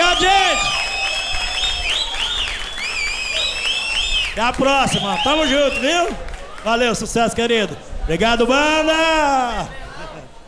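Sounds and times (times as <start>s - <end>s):
high sliding whistle tones: 0.0s - 5.9s
audience applauding a performer at a show with a band: 0.0s - 7.3s
speech: 4.4s - 9.8s.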